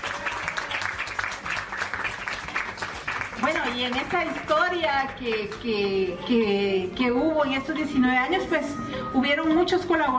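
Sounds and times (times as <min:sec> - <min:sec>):
audience applause: 0:00.0 - 0:05.4
speech: 0:03.7 - 0:10.1.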